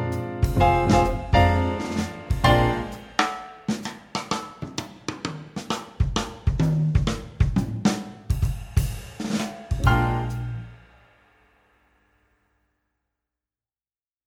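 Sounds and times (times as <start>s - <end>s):
swing drums: 0.0s - 11.4s.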